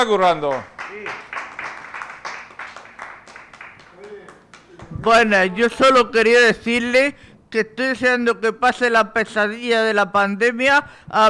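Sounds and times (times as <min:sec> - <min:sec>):
speech: 0:00.0 - 0:01.3, 0:05.0 - 0:11.2
crowd applauding: 0:00.5 - 0:04.9.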